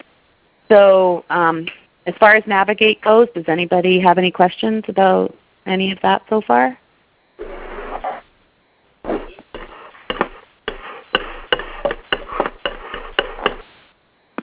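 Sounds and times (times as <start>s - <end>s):
speech: 0.7s - 6.8s
chopping food on a cutting board: 9.1s - 13.6s.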